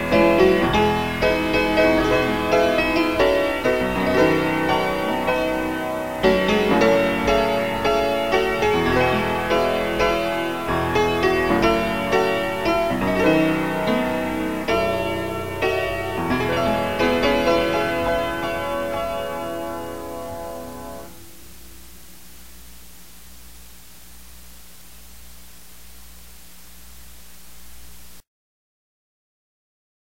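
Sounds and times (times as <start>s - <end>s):
piano: 0.0s - 23.8s.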